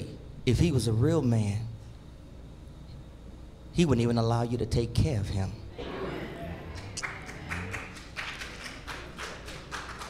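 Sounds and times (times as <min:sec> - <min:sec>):
speech: 0:00.5 - 0:01.7, 0:03.8 - 0:05.6
hand claps: 0:06.7 - 0:10.0.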